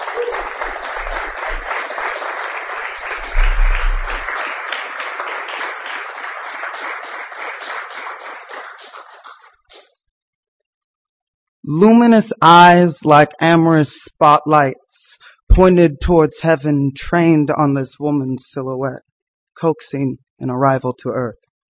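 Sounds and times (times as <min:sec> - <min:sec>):
audience applause: 0:00.0 - 0:09.8
low thump: 0:03.2 - 0:04.3
speech: 0:11.7 - 0:21.5.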